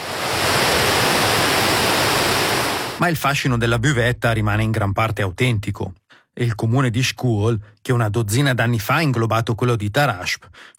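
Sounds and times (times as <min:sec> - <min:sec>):
rushing river water: 0:00.0 - 0:03.0
speech: 0:03.0 - 0:10.7.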